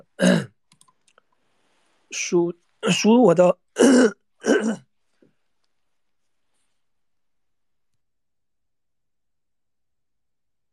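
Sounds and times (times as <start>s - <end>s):
coughing: 0.0s - 0.6s, 3.8s - 4.9s
speech: 2.1s - 4.9s.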